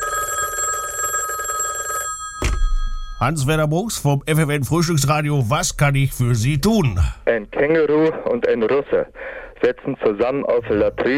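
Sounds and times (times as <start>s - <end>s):
telephone ringing with metallic bell trill: 0.0s - 3.5s
speech: 3.2s - 11.1s.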